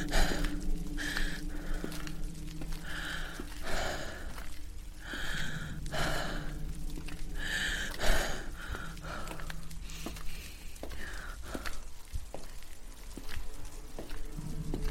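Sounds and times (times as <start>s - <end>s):
person hiding in an old church breathing heavily: 0.0s - 11.8s
low steady hum: 0.0s - 14.8s.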